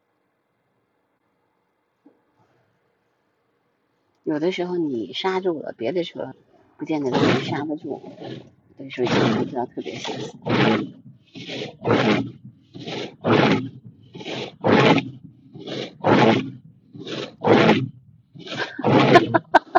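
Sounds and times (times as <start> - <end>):
speech: 4.3 - 11.0, 11.8 - 12.4
windshield wiper dragging snow across glass: 9.9 - 17.8
laughter: 18.6 - 19.7.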